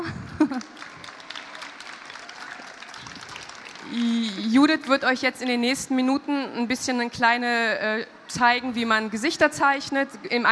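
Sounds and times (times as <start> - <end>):
laughter: 0.0 - 4.6
audience applause: 0.4 - 5.0
speech: 4.6 - 10.5.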